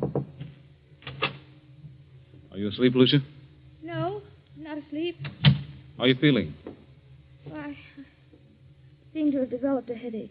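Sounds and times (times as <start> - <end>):
soft knocking on a door: 0.0 - 0.6, 6.6 - 6.9
speech: 2.6 - 3.4, 6.0 - 6.6, 9.6 - 10.3.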